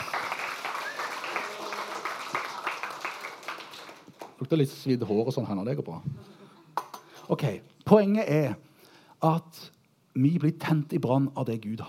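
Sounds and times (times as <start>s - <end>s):
audience applause: 0.0s - 4.4s
speech: 4.4s - 6.3s, 7.3s - 11.8s.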